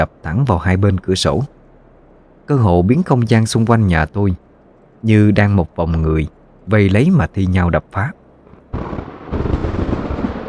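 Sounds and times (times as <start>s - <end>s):
speech: 0.0s - 1.6s, 2.5s - 4.4s, 5.0s - 9.6s
loud thunder clap and crackling rumble: 8.5s - 10.4s.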